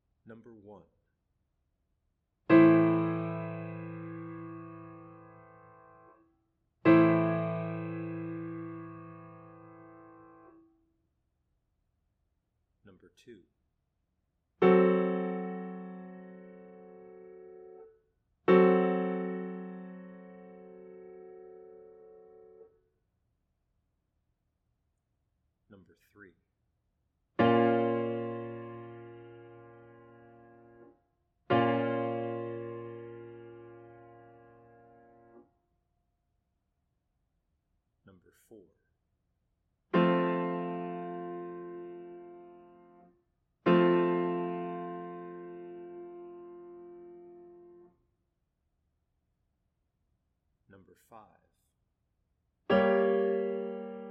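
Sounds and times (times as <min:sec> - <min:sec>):
chords: 0:02.5 - 0:06.1, 0:06.9 - 0:10.6, 0:14.6 - 0:17.9, 0:18.5 - 0:22.7, 0:27.4 - 0:30.9, 0:31.5 - 0:35.4, 0:40.0 - 0:43.1, 0:43.7 - 0:47.9, 0:52.7 - 0:54.0.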